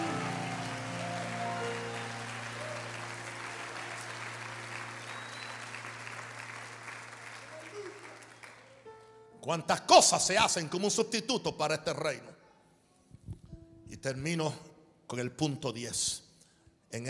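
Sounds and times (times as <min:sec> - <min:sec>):
sustained low organ or keyboard chord: 0:00.0 - 0:06.3
audience clapping: 0:00.0 - 0:08.9
speech: 0:09.4 - 0:12.4, 0:14.0 - 0:16.2.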